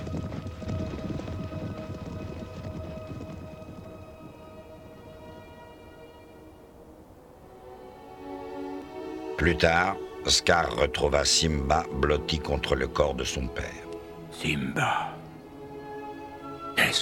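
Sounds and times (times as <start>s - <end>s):
thundering hooves of a stampeding herd: 0.0s - 9.1s
speech: 9.4s - 13.8s, 14.4s - 15.1s.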